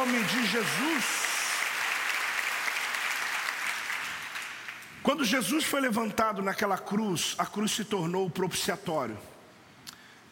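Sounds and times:
speech: 0:00.0 - 0:01.2, 0:05.0 - 0:09.3
audience applause: 0:00.0 - 0:04.9.

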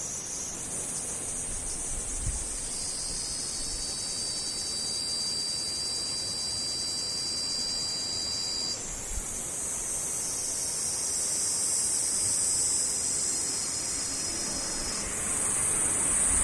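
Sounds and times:
cicadas droning: 0:00.0 - 0:16.4.

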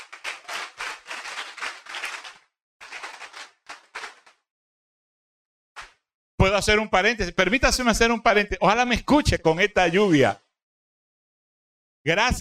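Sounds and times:
audience clapping loudly: 0:00.0 - 0:04.4
speech: 0:06.4 - 0:10.4, 0:12.0 - 0:12.3.

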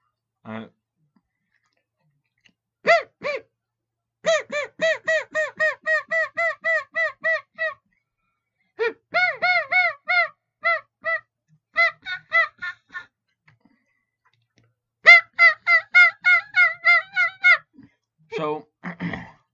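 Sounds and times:
mouth-blown Easy Clucker turkey call yelping and clucking: 0:04.3 - 0:07.8, 0:09.1 - 0:13.0, 0:15.0 - 0:17.7.

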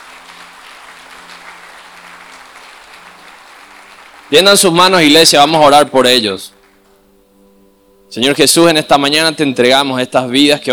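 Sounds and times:
audience applauding: 0:00.0 - 0:05.1
speech: 0:04.3 - 0:06.6, 0:08.1 - 0:10.7.

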